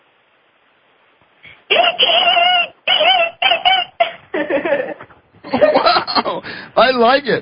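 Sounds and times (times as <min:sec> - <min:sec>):
person imitating dolphin calls: 0:01.5 - 0:04.2
laughter: 0:01.7 - 0:06.4
speech: 0:01.9 - 0:02.4, 0:06.1 - 0:07.3.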